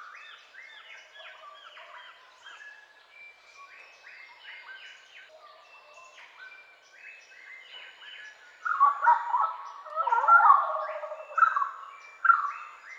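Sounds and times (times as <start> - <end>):
orange-footed scrubfowl calling: 8.7 - 12.5.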